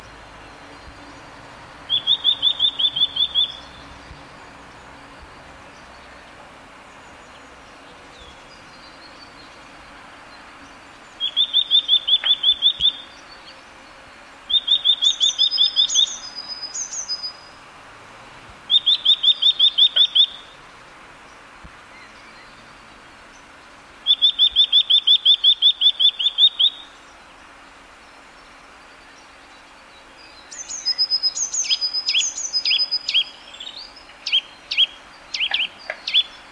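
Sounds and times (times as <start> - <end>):
Eurasian nuthatch caesia curving whistled notes, high thin calls and sharp clicks: 1.9 - 3.9, 11.2 - 13.1, 14.5 - 17.5, 18.7 - 20.5, 24.0 - 26.9, 30.3 - 36.4.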